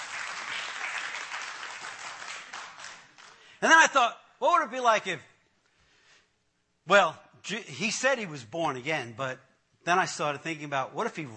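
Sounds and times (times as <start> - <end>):
audience applause: 0.0 - 3.5
speech: 3.6 - 5.3, 6.9 - 11.3.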